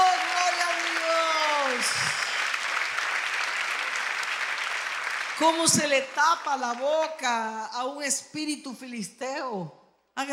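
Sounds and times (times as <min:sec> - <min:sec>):
church congregation applause during a service: 0:00.0 - 0:07.5
speech: 0:05.4 - 0:10.3.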